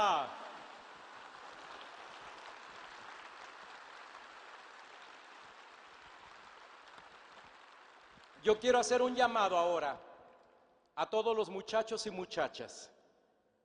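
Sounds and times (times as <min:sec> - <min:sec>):
crowd applause: 0:00.0 - 0:08.4
speech: 0:08.4 - 0:10.1, 0:11.0 - 0:13.0.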